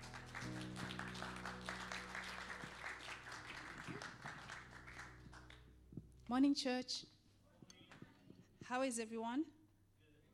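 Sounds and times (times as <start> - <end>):
church congregation clapping to welcome the pastor: 0.0 - 5.7
speech: 6.3 - 7.1, 8.7 - 9.6.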